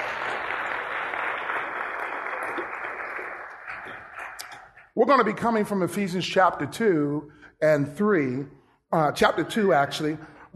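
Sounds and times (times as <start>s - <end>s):
crowd applauding: 0.0s - 4.9s
speech: 5.0s - 10.5s.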